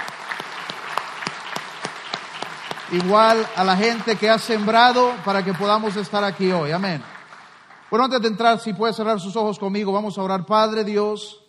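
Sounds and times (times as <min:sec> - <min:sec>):
loud applause: 0:00.0 - 0:09.1
speech: 0:02.9 - 0:07.1, 0:07.9 - 0:11.4.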